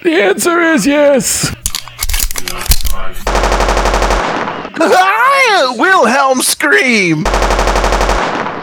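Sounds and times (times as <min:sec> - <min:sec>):
speech: 0:00.0 - 0:01.6, 0:04.8 - 0:08.4
machine gun fire: 0:03.3 - 0:04.7, 0:07.2 - 0:08.6.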